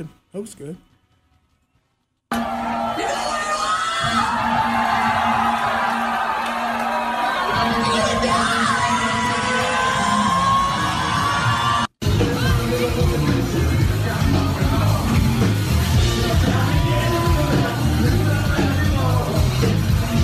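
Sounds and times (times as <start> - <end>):
speech: 0.0 - 0.9
crowd yelling and cheering: 2.3 - 20.2
live rock music: 7.5 - 20.2.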